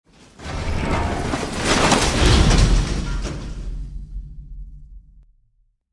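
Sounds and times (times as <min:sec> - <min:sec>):
metal breaking: 0:00.1 - 0:04.2.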